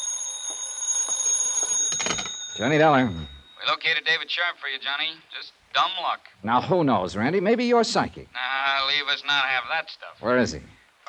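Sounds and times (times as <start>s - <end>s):
telephone ringing: 0.0s - 4.8s
speech: 2.1s - 11.0s.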